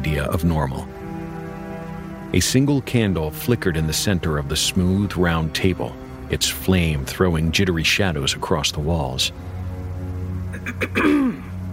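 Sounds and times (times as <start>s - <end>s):
low hum: 0.0s - 11.7s
speech: 0.1s - 1.0s, 2.3s - 9.5s, 10.8s - 11.4s
woman clearing throat: 10.6s - 11.5s.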